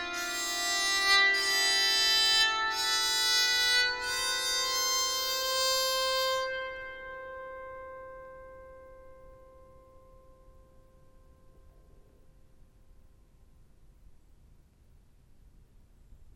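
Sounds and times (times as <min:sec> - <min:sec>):
walnut tenor bowed psaltery: 0:00.0 - 0:11.8.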